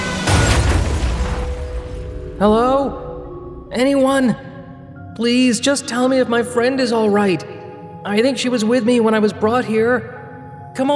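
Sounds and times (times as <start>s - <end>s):
car crashing head-on into truck: 0.0s - 2.4s
speech: 2.4s - 3.0s, 3.7s - 4.5s, 5.2s - 10.2s, 10.8s - 10.9s.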